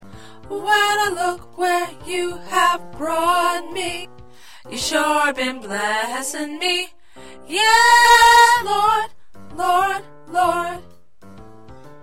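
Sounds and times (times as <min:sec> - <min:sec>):
alto choir singing: 0:00.6 - 0:04.1, 0:04.7 - 0:06.9, 0:07.5 - 0:10.8.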